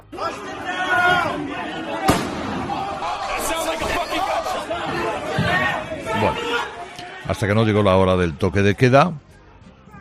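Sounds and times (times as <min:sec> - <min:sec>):
crowd chatter: 0:00.0 - 0:09.9
gunshots: 0:02.0 - 0:03.2
speech: 0:07.3 - 0:09.3.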